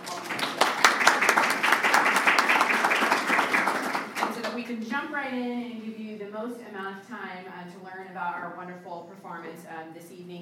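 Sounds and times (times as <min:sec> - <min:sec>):
audience applause: 0:00.0 - 0:04.6
speech: 0:04.9 - 0:10.4.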